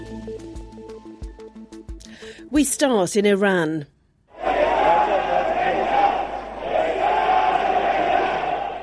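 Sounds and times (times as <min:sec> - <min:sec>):
speech: 0:02.5 - 0:03.9
jubilant crowd in Tehran cheering and chanting: 0:04.3 - 0:08.8.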